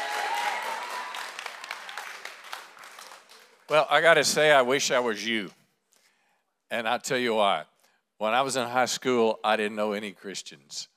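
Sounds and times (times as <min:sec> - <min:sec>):
crowd applause: 0:00.0 - 0:04.0
speech: 0:03.7 - 0:05.6, 0:06.7 - 0:10.9.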